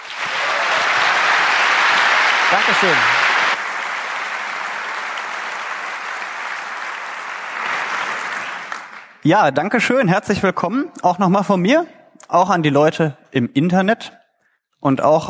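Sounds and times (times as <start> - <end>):
audience applause: 0.0 - 9.2
speech: 2.5 - 3.2, 9.2 - 14.2, 14.8 - 15.2.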